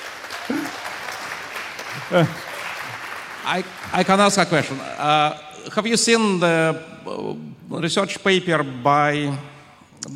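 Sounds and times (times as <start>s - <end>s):
audience applause: 0.0s - 4.8s
speech: 2.1s - 2.5s, 3.5s - 10.1s.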